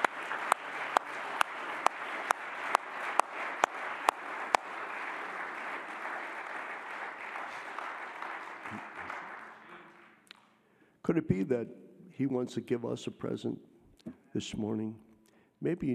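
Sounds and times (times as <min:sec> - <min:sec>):
audience clapping hands: 0:00.0 - 0:10.6
speech: 0:11.1 - 0:15.9.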